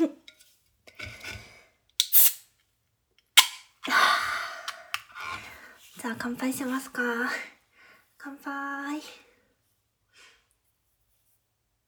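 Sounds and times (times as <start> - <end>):
opening a can of sour drink: 2.0 - 2.5, 3.4 - 3.8
speech: 6.0 - 7.6, 8.2 - 9.3.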